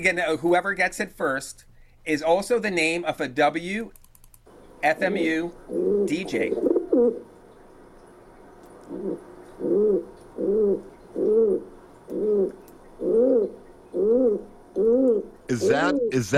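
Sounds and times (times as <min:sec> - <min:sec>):
speech: 0:00.0 - 0:04.0, 0:04.8 - 0:07.3, 0:08.9 - 0:16.3
pigeon cooing: 0:05.6 - 0:07.3, 0:08.8 - 0:16.3.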